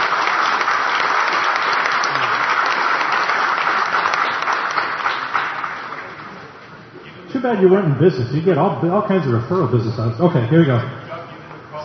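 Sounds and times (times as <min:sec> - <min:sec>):
round of applause: 0:00.0 - 0:06.5
speech: 0:07.4 - 0:11.0.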